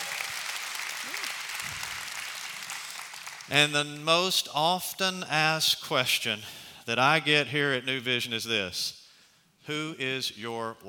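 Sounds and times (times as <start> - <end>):
audience applause: 0.0 - 3.6
speech: 3.5 - 9.0, 9.6 - 10.8.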